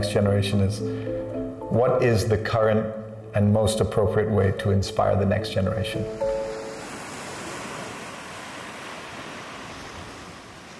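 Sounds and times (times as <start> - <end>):
speech: 0.0 - 6.4
ocean waves on a beach: 6.0 - 10.7.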